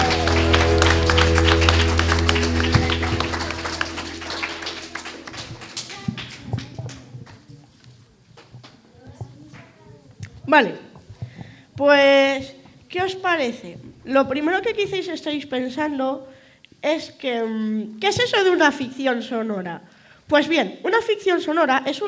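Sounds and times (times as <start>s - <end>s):
loud applause: 0.0s - 7.0s
speech: 10.5s - 10.8s, 11.8s - 22.0s.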